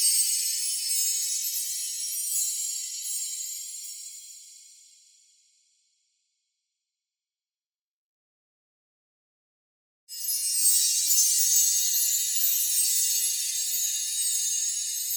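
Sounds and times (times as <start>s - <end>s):
shimmering chimes with steady light frequency shift: 0.0s - 5.4s, 10.1s - 15.1s.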